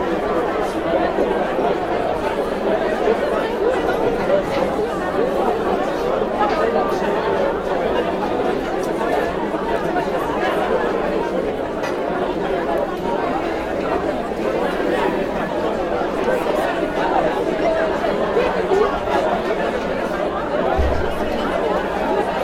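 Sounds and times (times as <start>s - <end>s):
babble of voices at a cocktail party: 0.0s - 22.4s.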